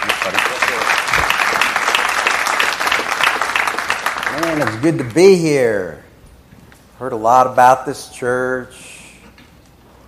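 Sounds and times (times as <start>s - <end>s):
church congregation applauding a guest pastor at a morning service: 0.0s - 5.4s
speech: 4.5s - 6.0s, 7.0s - 8.9s.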